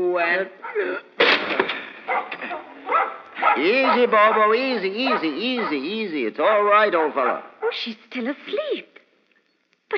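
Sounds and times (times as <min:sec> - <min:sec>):
speech: 0:00.0 - 0:02.3, 0:03.6 - 0:08.9
door forced open with heavy chair: 0:01.2 - 0:02.8.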